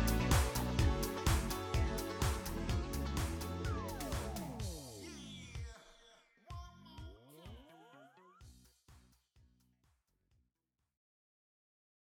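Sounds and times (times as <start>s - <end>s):
instrumental music: 0.0s - 5.0s.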